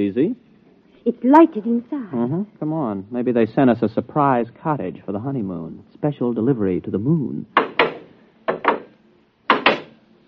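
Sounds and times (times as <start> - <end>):
speech: 0.0 - 0.4, 1.0 - 7.6
door closing with sharp wooden thumps: 7.6 - 10.0.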